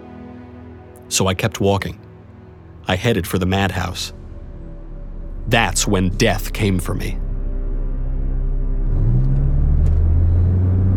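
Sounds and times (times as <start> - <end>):
speech: 1.1 - 2.0, 2.9 - 4.2, 5.5 - 7.2
car engine accelerating: 8.0 - 10.9.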